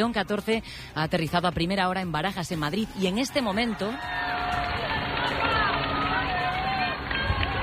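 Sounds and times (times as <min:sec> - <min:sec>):
speech: 0:00.0 - 0:04.6
street crowd in Madrid during Pope Leo XIV's popemobile parade: 0:03.0 - 0:07.6.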